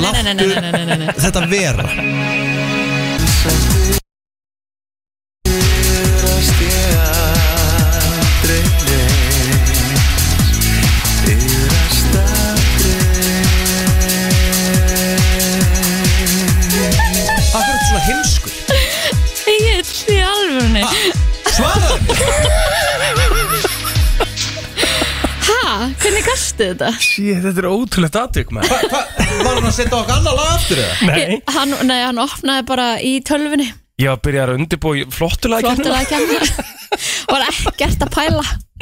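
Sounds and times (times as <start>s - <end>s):
laughter: 0.0s - 2.1s, 16.7s - 19.0s, 20.8s - 26.3s, 28.6s - 32.1s, 35.6s - 38.0s
speech: 0.1s - 2.8s, 3.4s - 4.0s, 26.1s - 38.8s
pop song played in studio: 3.1s - 4.0s, 5.5s - 26.4s, 28.6s - 32.1s, 35.5s - 38.5s.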